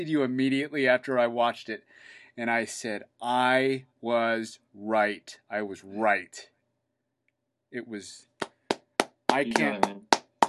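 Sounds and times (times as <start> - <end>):
speech: 0.0 - 6.5, 7.7 - 8.3, 9.3 - 10.1
one person clapping: 8.4 - 10.4.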